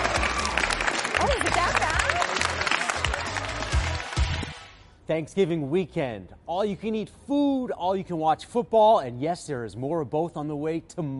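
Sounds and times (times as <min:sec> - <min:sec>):
scattered cheering voices: 0:00.0 - 0:04.2
audience applause: 0:00.0 - 0:04.8
speech: 0:05.1 - 0:11.1.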